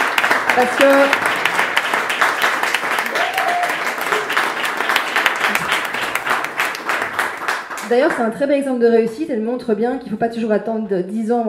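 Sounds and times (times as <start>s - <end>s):
audience applause: 0.0s - 8.3s
speech: 0.6s - 1.3s, 7.9s - 11.4s.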